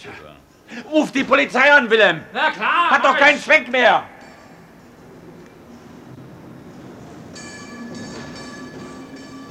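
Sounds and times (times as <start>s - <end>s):
speech: 0.0s - 4.1s
tram wheels squealing: 4.3s - 9.5s
tram approaching on rails: 4.5s - 9.5s.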